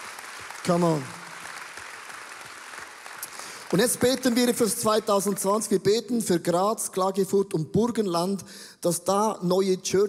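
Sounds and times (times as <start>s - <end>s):
audience applause: 0.0s - 5.7s
speech: 0.7s - 1.2s, 3.7s - 10.0s.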